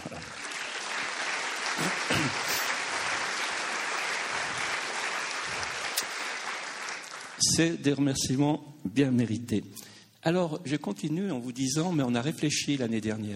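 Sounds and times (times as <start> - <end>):
audience applause: 0.0 - 7.6
speech: 7.6 - 13.3.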